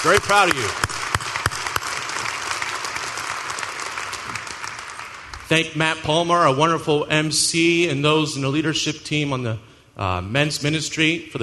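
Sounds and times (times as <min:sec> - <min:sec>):
speech: 0:00.0 - 0:00.8, 0:05.5 - 0:11.4
audience applause: 0:00.0 - 0:05.5.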